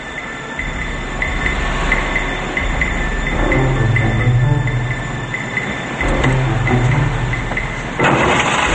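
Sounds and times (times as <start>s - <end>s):
car engine rumbling as car drives slowly into a parking garage: 0.0s - 8.7s.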